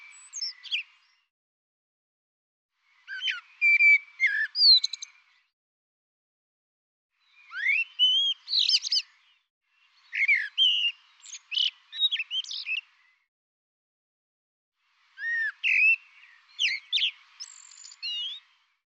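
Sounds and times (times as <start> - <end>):
bird song with chirps whistles and trilled notes: 0.0 - 1.3, 2.8 - 5.6, 7.1 - 13.3, 14.8 - 18.8.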